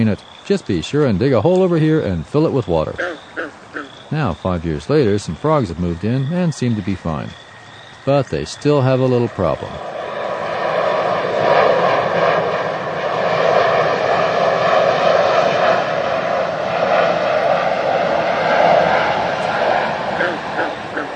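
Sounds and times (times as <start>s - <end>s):
speech: 0.0s - 3.2s, 4.1s - 7.4s, 8.0s - 9.9s
airplane engines roaring by an airport: 0.0s - 21.1s.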